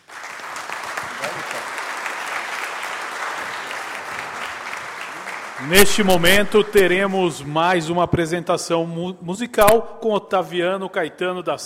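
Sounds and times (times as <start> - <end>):
audience applause: 0.0 - 6.8
speech: 5.6 - 11.6.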